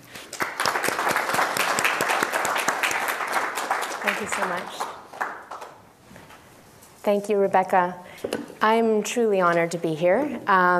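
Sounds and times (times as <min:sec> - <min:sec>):
university lecture audience applause welcoming a professor: 0:00.2 - 0:05.8
speech: 0:04.2 - 0:04.9, 0:07.0 - 0:08.0, 0:08.6 - 0:10.7.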